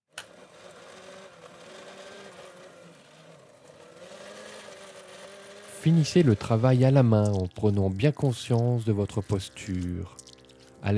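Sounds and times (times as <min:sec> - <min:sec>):
blender running: 0:00.1 - 0:07.8
speech: 0:05.8 - 0:10.2.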